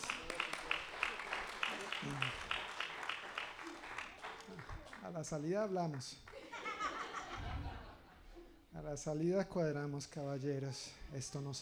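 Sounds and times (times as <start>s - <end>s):
applause for the participants: 0.0s - 6.4s
laughter: 0.0s - 8.8s
speech: 5.1s - 6.3s, 8.8s - 11.5s.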